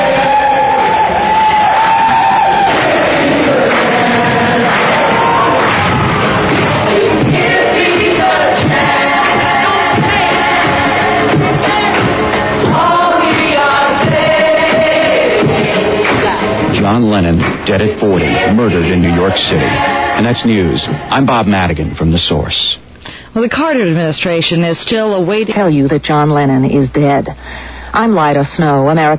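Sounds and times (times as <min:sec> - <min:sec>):
large crowd chanting together outside building: 0:00.0 - 0:16.8, 0:17.7 - 0:21.3
speech: 0:17.8 - 0:22.8, 0:23.4 - 0:29.1.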